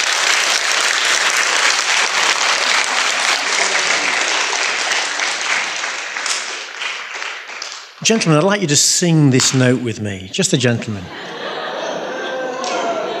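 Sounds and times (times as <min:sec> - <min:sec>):
audience clapping: 0:00.0 - 0:09.8, 0:12.1 - 0:13.1
laughter: 0:01.5 - 0:06.0, 0:10.4 - 0:13.1
speech: 0:08.1 - 0:11.3.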